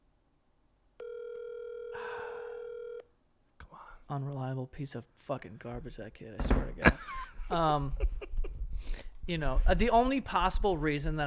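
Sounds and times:
outgoing phone call ringing tone: 0:01.0 - 0:03.1
speech: 0:04.1 - 0:08.3, 0:09.3 - 0:11.2.

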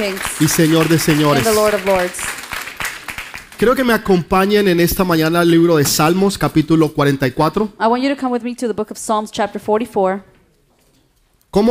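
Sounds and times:
speech: 0:00.0 - 0:02.4, 0:03.6 - 0:10.3
audience applause: 0:00.0 - 0:04.1.

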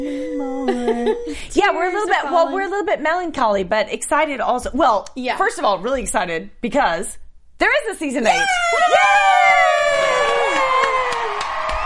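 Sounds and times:
laughter: 0:00.4 - 0:02.8
speech: 0:00.9 - 0:09.4
studio audience cheering and whooping: 0:08.3 - 0:11.8.

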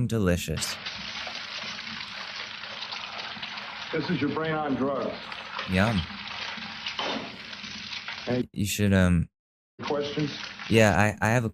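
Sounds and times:
speech: 0:00.0 - 0:01.0, 0:03.9 - 0:07.2, 0:08.2 - 0:11.5
egg frying in a pan: 0:00.6 - 0:08.4, 0:09.8 - 0:11.0.

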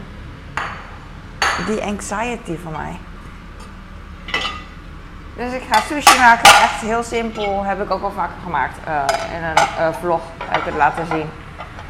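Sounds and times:
speech: 0:01.6 - 0:03.1, 0:05.4 - 0:11.4
glasses clinking as they are pushed into a cupboard: 0:04.3 - 0:04.7.

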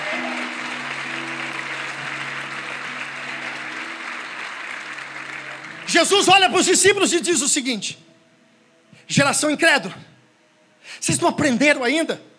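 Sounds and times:
audience applause: 0:00.0 - 0:06.9
speech: 0:05.9 - 0:08.2, 0:09.1 - 0:10.1, 0:10.8 - 0:12.3.

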